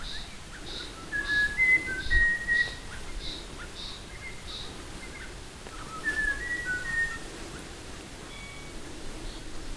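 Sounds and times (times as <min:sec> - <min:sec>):
buffy laughingthrush whistling: 0:00.8 - 0:02.9, 0:05.8 - 0:07.2.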